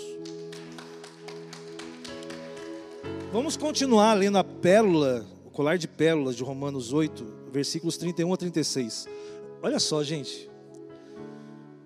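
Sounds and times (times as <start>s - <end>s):
crowd applause: 0.2s - 3.6s
speech: 3.3s - 10.5s.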